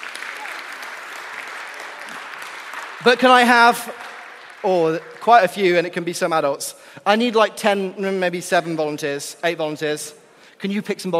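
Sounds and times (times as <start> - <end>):
audience clapping for volunteers: 0.0 - 6.5
speech: 3.0 - 4.0, 4.6 - 11.1.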